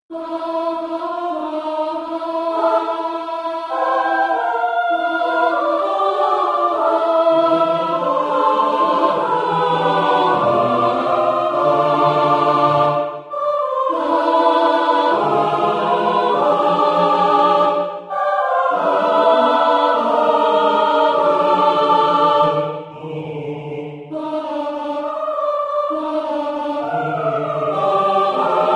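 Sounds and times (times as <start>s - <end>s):
choir singing: 0.1s - 28.7s.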